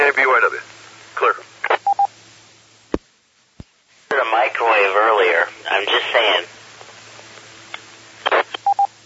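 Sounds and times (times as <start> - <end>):
speech: 0.1 - 1.4
radio repeater tone, Morse letter K: 4.1 - 6.5, 8.3 - 8.8.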